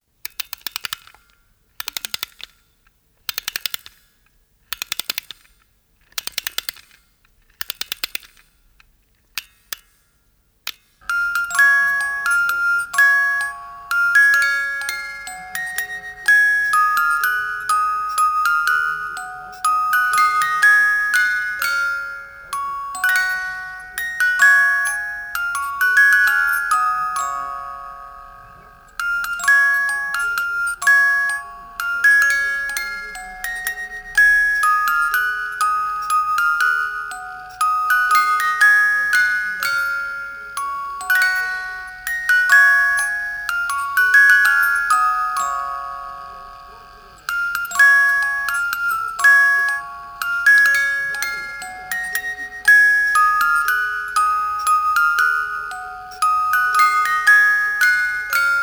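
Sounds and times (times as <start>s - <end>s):
music box: 0.2s - 58.6s.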